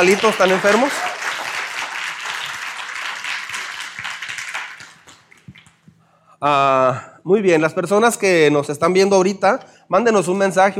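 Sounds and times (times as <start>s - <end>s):
speech: 0.0s - 1.2s, 6.4s - 10.7s
audience applause: 0.0s - 5.7s.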